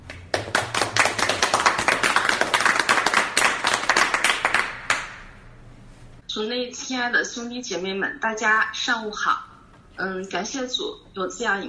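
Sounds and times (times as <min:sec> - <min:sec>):
audience clapping: 0:00.0 - 0:05.4
speech: 0:06.4 - 0:09.4, 0:10.0 - 0:11.6.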